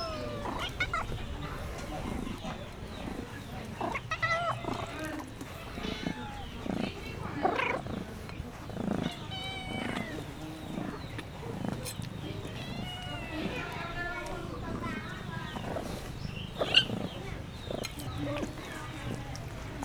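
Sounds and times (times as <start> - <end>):
cat meowing in a farmyard: 0.0 - 1.2, 9.1 - 10.2, 12.4 - 14.1
cat purring in a farmyard: 0.0 - 19.8.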